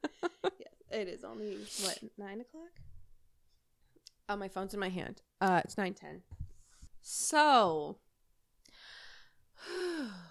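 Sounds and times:
speech: 1.0s - 2.8s, 4.3s - 6.4s, 7.0s - 8.0s
person taking a deep breath with a voiced sigh: 8.7s - 10.2s.

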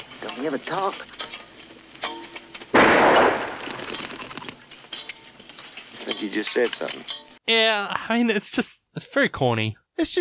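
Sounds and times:
speech: 0.4s - 1.2s, 6.2s - 10.1s
rifle gunshot in film scene: 2.7s - 3.9s.

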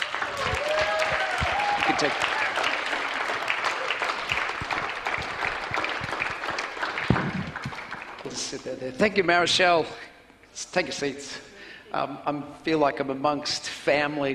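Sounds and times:
voices whooping: 0.0s - 4.2s
crowd clapping: 0.0s - 8.7s
speech: 1.9s - 2.3s, 8.5s - 14.3s.

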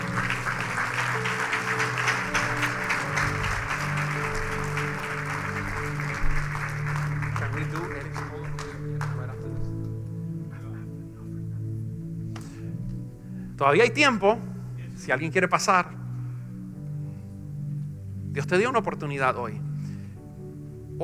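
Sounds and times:
audience applauding loudly: 0.0s - 9.6s
sustained musical tones: 0.0s - 21.0s
speech: 13.6s - 14.5s, 15.1s - 16.0s, 18.5s - 19.7s.

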